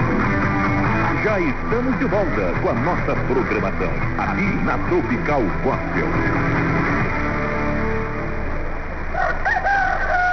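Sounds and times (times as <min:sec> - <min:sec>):
low rumbling noise: 0:00.0 - 0:10.3
speech: 0:01.2 - 0:07.0
rooster crowing: 0:09.1 - 0:10.3.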